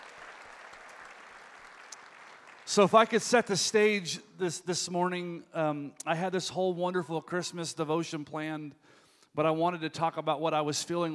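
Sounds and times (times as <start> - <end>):
church congregation applause: 0.0 - 3.4
speech: 2.7 - 11.1.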